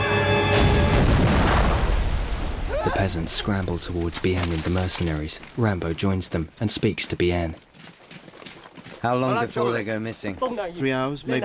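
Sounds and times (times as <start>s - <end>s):
grenade explosion in a paddy field: 0.5s - 4.6s
speech: 3.0s - 7.7s, 9.0s - 11.4s.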